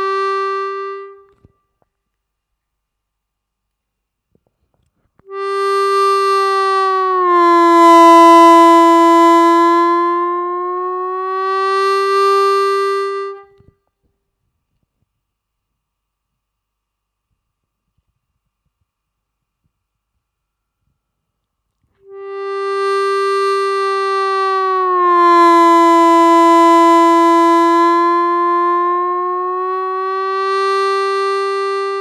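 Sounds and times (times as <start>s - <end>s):
harmonica bend practice track: 0.0s - 1.4s, 5.3s - 13.6s, 22.1s - 32.0s.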